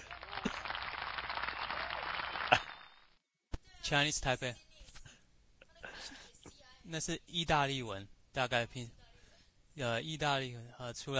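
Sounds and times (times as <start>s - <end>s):
applause sound effect: 0.0s - 3.2s
speech: 3.9s - 4.6s, 6.9s - 9.0s, 9.8s - 11.1s.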